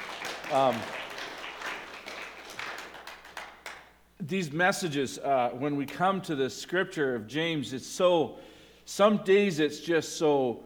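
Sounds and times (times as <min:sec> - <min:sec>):
audience clapping: 0:00.0 - 0:04.0
speech: 0:00.5 - 0:01.0, 0:04.3 - 0:10.6.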